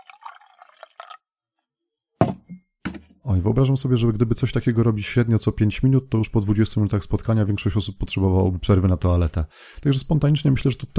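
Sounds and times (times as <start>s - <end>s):
water being poured: 0.0s - 1.3s
speech: 3.3s - 10.9s.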